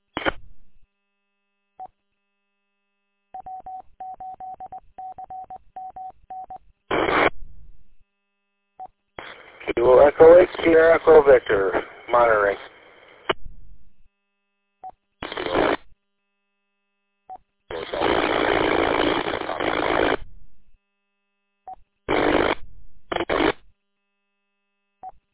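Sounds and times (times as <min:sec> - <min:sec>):
radio static bursts from meteor or signal scatter: 0:00.2 - 0:00.4, 0:06.9 - 0:07.4, 0:09.2 - 0:13.4, 0:15.2 - 0:15.9, 0:17.7 - 0:20.3, 0:22.1 - 0:23.6.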